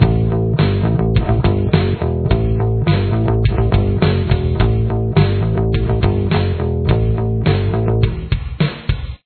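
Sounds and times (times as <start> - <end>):
bass: 0.0 - 9.2.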